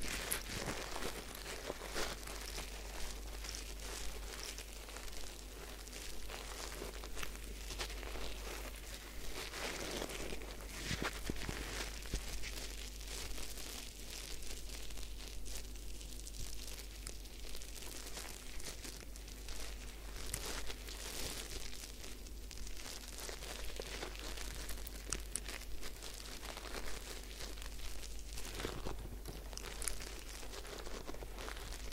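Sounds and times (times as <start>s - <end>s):
crinkling and rustling during a head spa hair wash and massage: 0.0s - 31.9s.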